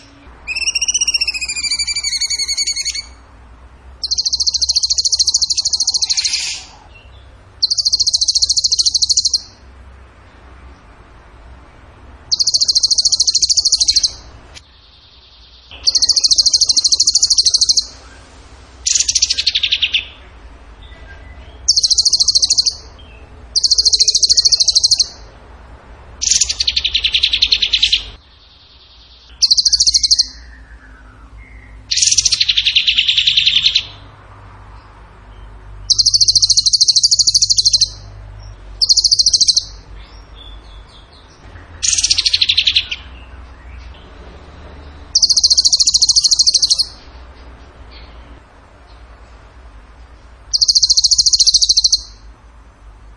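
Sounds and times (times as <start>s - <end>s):
bird song trills: 0.0s - 3.3s, 4.0s - 9.6s, 12.3s - 18.2s, 18.8s - 20.2s, 21.2s - 25.3s, 26.2s - 28.2s, 29.0s - 34.0s, 35.9s - 38.1s, 38.8s - 43.3s, 44.8s - 47.1s, 50.5s - 52.3s.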